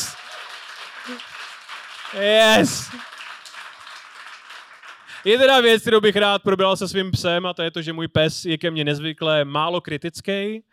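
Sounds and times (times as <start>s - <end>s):
audience applause: 0.0s - 5.7s
speech: 1.0s - 1.3s, 2.1s - 3.1s, 5.2s - 10.7s.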